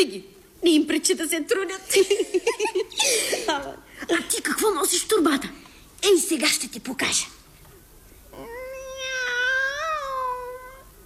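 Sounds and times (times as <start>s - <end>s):
speech: 0.0s - 7.4s
cat meowing: 8.4s - 10.9s.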